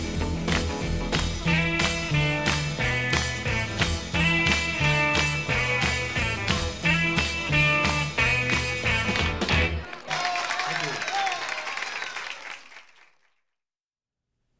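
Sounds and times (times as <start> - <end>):
band playing: 0.0 - 10.2
rhythmic hand claps: 0.0 - 13.2.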